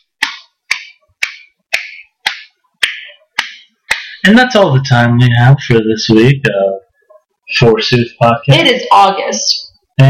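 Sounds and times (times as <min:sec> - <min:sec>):
slow polite golf clap: 0:00.1 - 0:04.2
speech: 0:04.2 - 0:06.8, 0:07.5 - 0:10.0.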